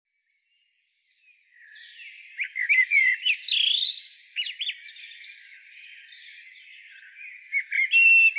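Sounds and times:
common blackbird Turdus merula song: 0.1s - 8.3s.

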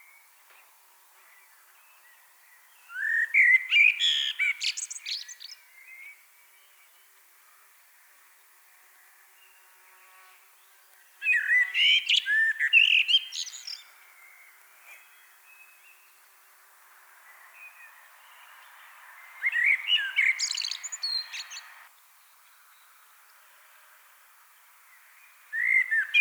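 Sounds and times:
faint birds: 0.0s - 26.2s
common blackbird singing: 1.3s - 6.8s, 11.2s - 16.2s, 17.6s - 21.9s, 25.5s - 26.2s.

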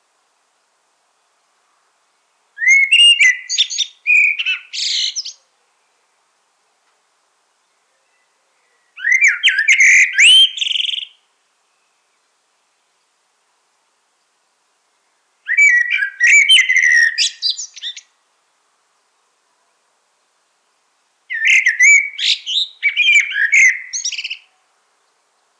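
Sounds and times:
common blackbird singing: 2.6s - 5.5s, 7.9s - 12.0s, 15.5s - 18.1s, 21.3s - 24.6s.

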